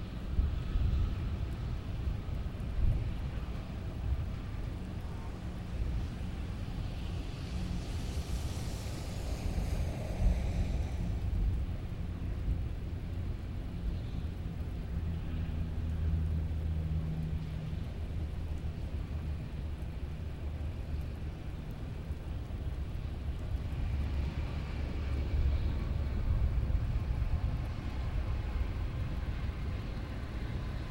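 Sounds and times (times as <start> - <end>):
pleasant rain: 0.0 - 30.8.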